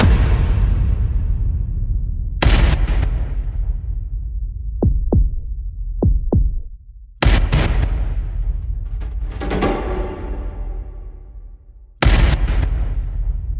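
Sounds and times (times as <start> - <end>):
percussion: 0.0 - 13.5.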